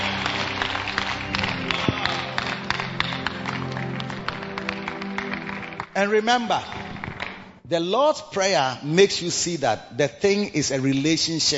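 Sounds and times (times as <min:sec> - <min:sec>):
audience clapping hands: 0:00.0 - 0:07.6
speech: 0:06.0 - 0:06.8, 0:07.7 - 0:11.5.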